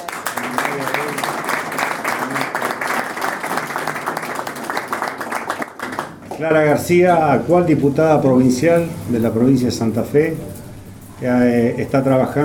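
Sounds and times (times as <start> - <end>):
audience applause: 0.0 - 6.4
speech: 6.4 - 10.5, 11.2 - 12.4.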